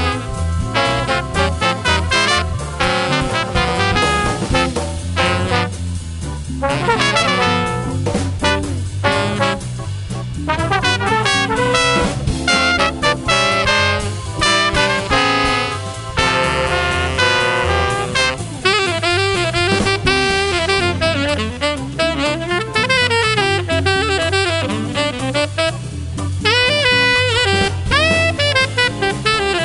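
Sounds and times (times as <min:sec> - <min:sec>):
big band music: 0:00.0 - 0:29.6.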